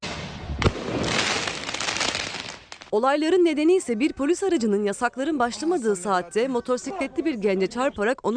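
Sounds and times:
firework bang during street riot: 0:00.0 - 0:02.9
speech: 0:02.9 - 0:08.3.

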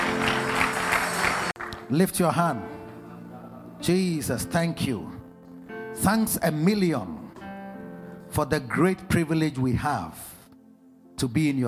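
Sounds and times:
audience clapping hands: 0:00.0 - 0:02.0
speech: 0:01.9 - 0:02.8, 0:03.8 - 0:05.2, 0:06.0 - 0:07.2, 0:08.3 - 0:10.3, 0:11.2 - 0:11.6.

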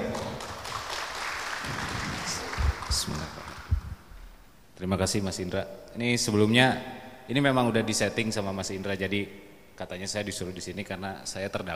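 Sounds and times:
audience applause: 0:00.0 - 0:03.8
speech: 0:02.9 - 0:03.4, 0:04.8 - 0:11.7.

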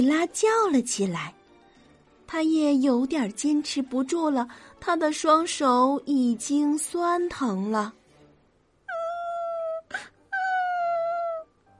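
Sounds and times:
speech: 0:00.0 - 0:01.4, 0:02.3 - 0:08.0
child crying: 0:08.9 - 0:11.5.

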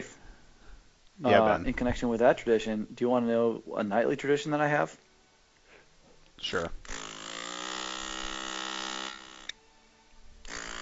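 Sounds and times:
speech: 0:01.2 - 0:05.0, 0:06.4 - 0:07.0
electric nasal aspirator suctioning a nose: 0:06.8 - 0:09.7, 0:10.4 - 0:10.7.

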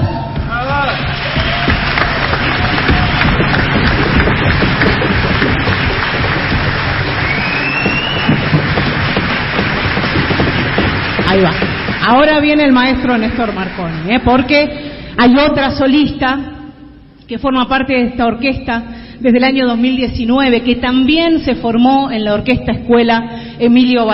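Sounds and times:
audience applause: 0:00.4 - 0:14.7
speech: 0:11.4 - 0:16.5, 0:17.3 - 0:24.1.

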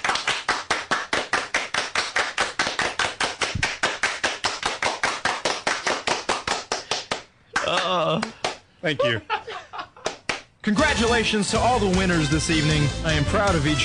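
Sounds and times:
hands clapping in a steady even rhythm: 0:00.0 - 0:08.7, 0:10.0 - 0:10.6
laughter: 0:07.6 - 0:10.1
speech: 0:07.8 - 0:09.4, 0:10.6 - 0:13.8.

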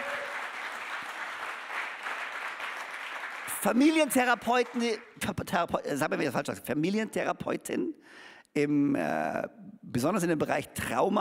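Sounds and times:
audience applause: 0:00.0 - 0:05.1
speech: 0:03.6 - 0:11.1.

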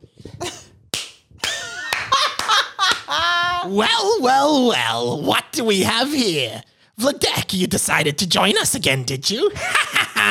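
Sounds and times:
hands clapping: 0:00.9 - 0:03.2
speech: 0:03.6 - 0:10.2.

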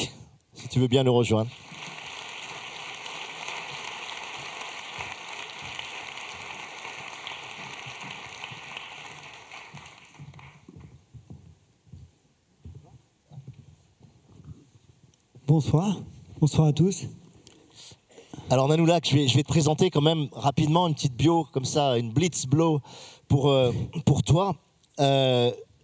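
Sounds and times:
speech: 0:00.7 - 0:01.7, 0:15.6 - 0:17.2, 0:18.5 - 0:25.7
audience applause: 0:01.4 - 0:10.7.

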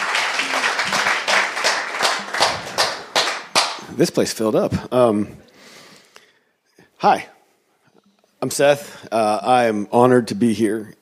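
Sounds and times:
audience applause: 0:00.0 - 0:03.9
speech: 0:04.0 - 0:05.5, 0:07.0 - 0:07.3, 0:08.4 - 0:10.9.

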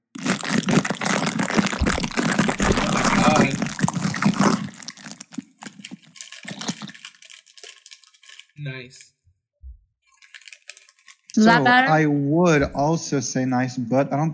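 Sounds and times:
loud crunch sound effect made at microphone: 0:00.0 - 0:08.5
murmured vocal sounds: 0:02.6 - 0:03.8, 0:11.4 - 0:13.4
speech: 0:08.7 - 0:09.2, 0:11.4 - 0:14.3.

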